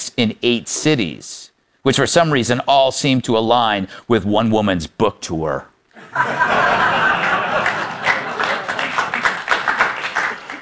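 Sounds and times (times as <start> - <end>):
speech: 0.2 - 6.9
scattered chuckles: 5.9 - 10.6
studio audience polite applause: 6.5 - 10.6.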